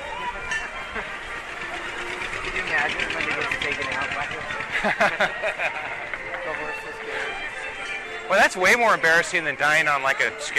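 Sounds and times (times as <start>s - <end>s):
fire truck engine rumbling as it drives past: 0.0s - 8.3s
crowd voices and chatter: 0.0s - 10.5s
laughter: 0.2s - 7.4s
speech: 4.8s - 6.0s, 8.3s - 10.5s.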